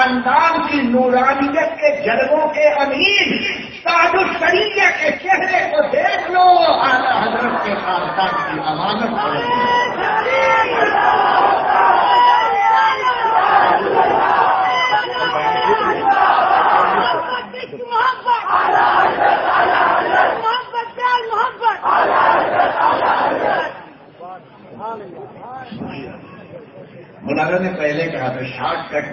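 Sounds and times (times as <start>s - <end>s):
speech: 0.2s - 11.6s, 27.3s - 29.1s
crowd chanting a slogan at a religious gathering: 9.2s - 20.7s, 21.6s - 24.0s.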